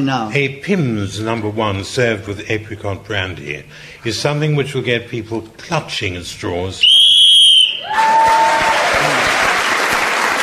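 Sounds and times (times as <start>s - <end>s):
speech: 0.0s - 7.0s
game whistle blast: 6.8s - 8.0s
crowd applause: 7.6s - 10.4s.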